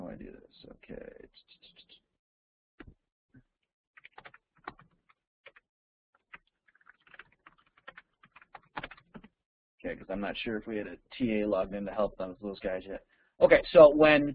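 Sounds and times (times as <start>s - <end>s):
speech: 0.2s - 1.8s, 9.9s - 14.3s
typing on a computer keyboard: 4.0s - 5.6s, 6.2s - 9.4s.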